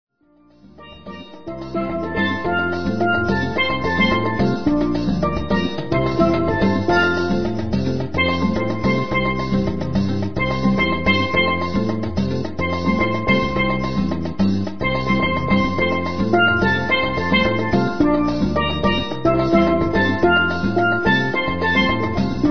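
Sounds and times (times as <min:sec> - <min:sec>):
steel drum band: 0:00.5 - 0:22.4.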